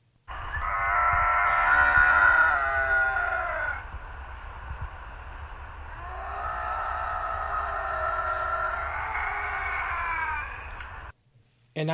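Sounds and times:
bobcat yowling screams: 0.3 - 3.9, 5.9 - 11.1.

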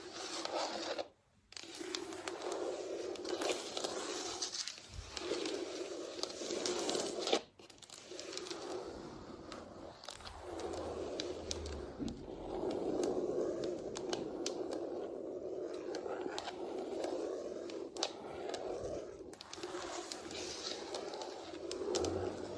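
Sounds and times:
fake nails scratching across a floor: 0.0 - 22.5.

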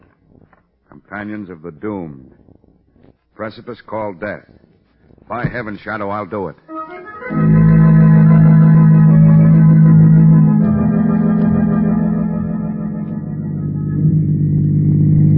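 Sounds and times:
speech: 1.1 - 2.4, 3.4 - 4.6, 5.3 - 6.7
car driving engine drone as a 1940 radio drama sound effect: 7.3 - 15.3.

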